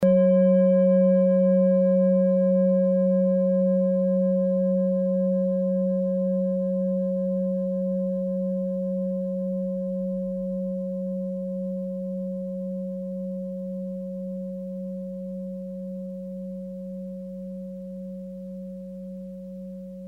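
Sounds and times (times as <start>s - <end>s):
Orissa singing bowl: 0.0s - 20.0s.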